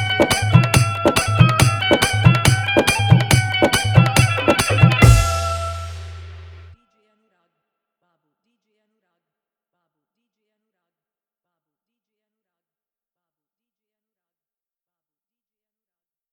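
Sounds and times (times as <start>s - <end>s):
bass-heavy dance mix: 0.0s - 6.8s
hard dholak drumming: 0.0s - 6.8s.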